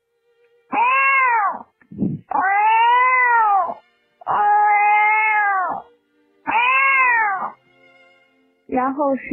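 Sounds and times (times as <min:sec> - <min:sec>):
person imitating a cat meowing: 0:00.7 - 0:05.9, 0:06.5 - 0:07.6
speech: 0:09.0 - 0:09.3.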